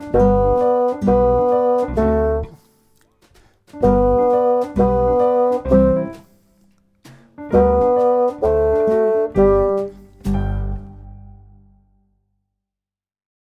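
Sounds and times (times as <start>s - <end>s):
bassoon: 0.0s - 2.7s, 3.8s - 6.3s, 7.5s - 11.6s.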